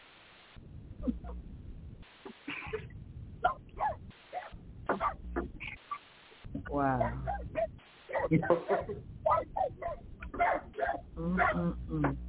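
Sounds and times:
low hum: 0.0s - 12.2s
dog barking: 3.4s - 5.2s, 7.0s - 11.7s
speech: 8.3s - 9.5s, 11.2s - 12.2s.

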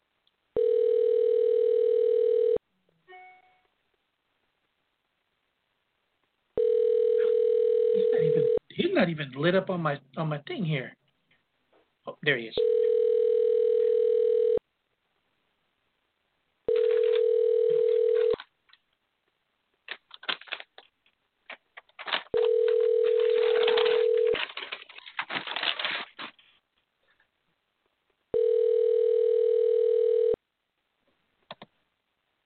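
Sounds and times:
telephone ringback tone on outgoing call: 0.6s - 2.6s, 6.6s - 8.6s, 12.6s - 14.6s, 16.7s - 18.4s, 22.4s - 24.4s, 28.3s - 30.4s
speech: 9.0s - 11.0s, 12.2s - 12.8s
rustling: 19.8s - 27.3s.

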